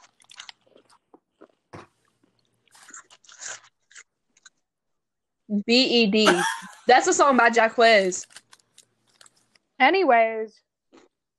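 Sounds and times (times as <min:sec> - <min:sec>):
crunchy chewing of cereal: 0:00.0 - 0:04.7, 0:08.2 - 0:09.7
speech: 0:05.5 - 0:08.4, 0:09.8 - 0:10.6.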